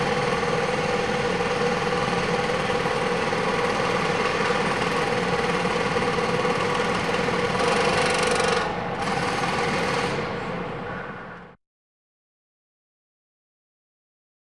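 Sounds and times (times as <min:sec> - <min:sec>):
demolition city ambience: 0:00.0 - 0:11.6.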